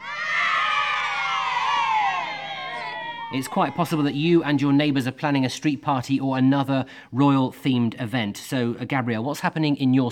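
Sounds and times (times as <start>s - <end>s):
comedy crowd cheer sound effect: 0.0s - 4.5s
speech: 3.3s - 10.1s.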